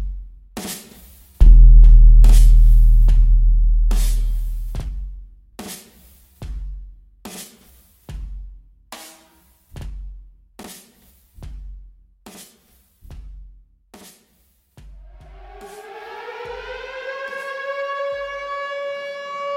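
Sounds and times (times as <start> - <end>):
808 bass: 1.4 - 4.8.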